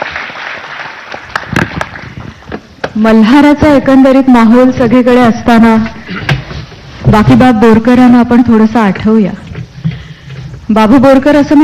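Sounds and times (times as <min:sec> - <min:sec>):
audience applauding a performer: 0:00.0 - 0:02.1
speech: 0:03.0 - 0:06.0, 0:07.1 - 0:09.4, 0:10.7 - 0:11.6.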